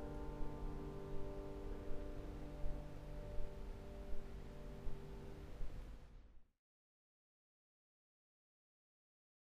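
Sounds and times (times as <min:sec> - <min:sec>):
prelude in G minor: 0:00.0 - 0:05.6.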